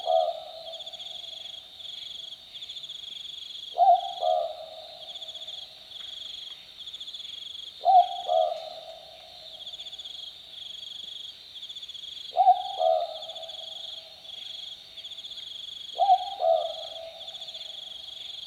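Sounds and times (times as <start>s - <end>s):
boobook owl calling on a summer night: 0.0s - 1.0s, 3.7s - 5.0s, 7.8s - 9.2s, 12.3s - 13.8s, 15.9s - 17.5s.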